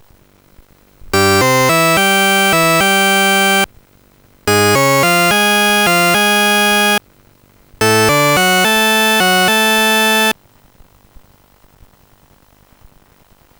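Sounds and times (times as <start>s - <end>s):
tune: 1.2s - 3.7s, 4.5s - 7.0s, 7.8s - 10.3s.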